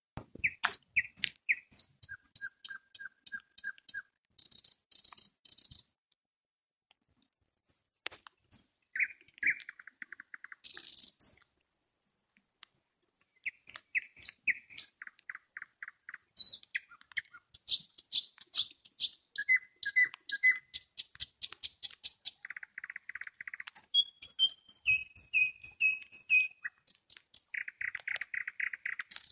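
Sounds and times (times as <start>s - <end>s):
nightingale song: 0.2s - 6.0s, 7.7s - 11.5s, 13.2s - 29.3s.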